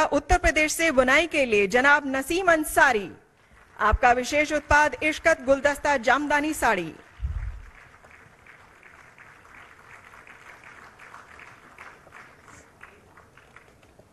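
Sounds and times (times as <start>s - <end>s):
speech: 0.0s - 3.2s, 3.8s - 7.0s
audience applause: 7.0s - 14.1s.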